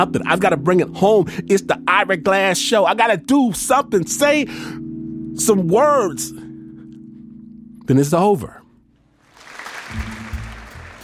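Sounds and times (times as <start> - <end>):
speech: 0.0 - 4.8, 5.4 - 6.4, 7.9 - 8.6
polite audience applause after a stage show: 9.2 - 11.0.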